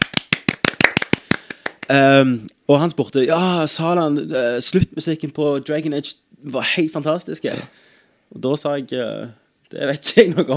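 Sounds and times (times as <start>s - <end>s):
hand clapping: 0.0s - 2.0s
speech: 1.9s - 10.5s.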